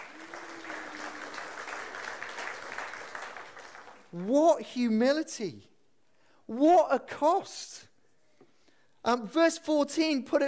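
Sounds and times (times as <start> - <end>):
round of applause: 0.0 - 4.4
speech: 4.1 - 5.7, 6.5 - 7.9, 9.0 - 10.4.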